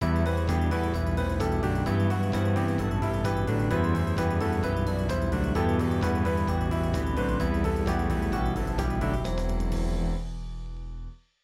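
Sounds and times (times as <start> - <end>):
1980s style music: 0.0 - 10.4.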